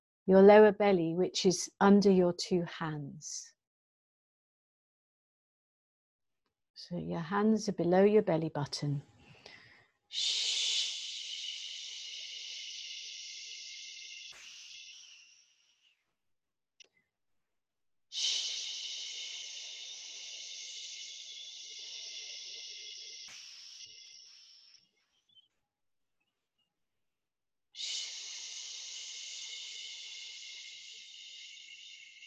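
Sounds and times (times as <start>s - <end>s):
speech: 0.3s - 3.5s, 6.9s - 9.1s, 10.1s - 10.7s
person exhaling with a shh sound during a breathing exercise: 9.4s - 15.7s, 18.1s - 24.7s, 27.8s - 32.2s.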